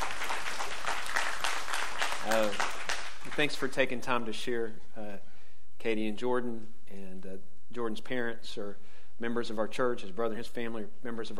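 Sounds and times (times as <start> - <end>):
audience clapping: 0.0 - 3.8
speech: 2.3 - 2.7, 3.4 - 11.3.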